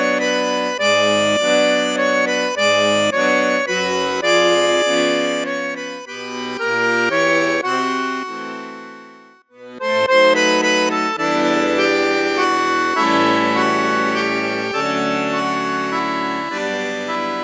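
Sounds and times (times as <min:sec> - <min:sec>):
accordion on bassoon piccolo register: 0:00.0 - 0:17.4.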